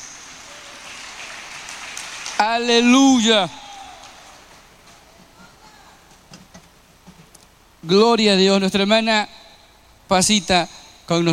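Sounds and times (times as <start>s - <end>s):
audience clapping hands: 0.0s - 5.2s
speech: 2.4s - 3.6s, 7.9s - 9.4s, 10.1s - 11.3s.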